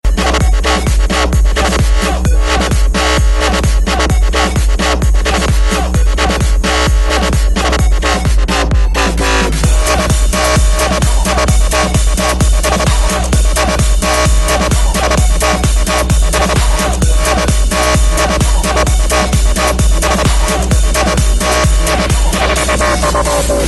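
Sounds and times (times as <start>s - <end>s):
techno remix: 0.0s - 23.6s.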